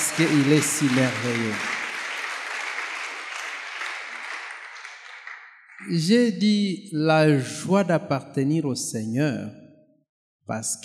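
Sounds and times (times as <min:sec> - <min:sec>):
congregation applauding in praise of the Lord at a French-language church service: 0:00.0 - 0:06.0
speech: 0:00.2 - 0:01.7, 0:05.9 - 0:09.6, 0:10.5 - 0:10.8.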